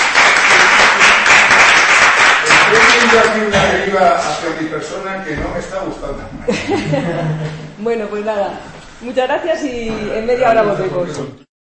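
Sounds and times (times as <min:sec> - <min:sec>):
audience applause at a talk or lecture: 0:00.0 - 0:03.5
speech: 0:02.7 - 0:11.4
laughter: 0:06.3 - 0:07.8.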